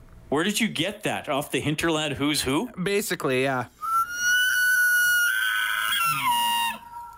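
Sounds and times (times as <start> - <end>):
speech: 0.3 - 3.8
elk calling: 3.8 - 7.1.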